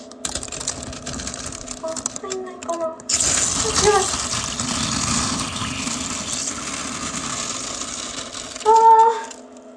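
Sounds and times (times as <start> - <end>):
urinating into a container: 3.1 - 9.0.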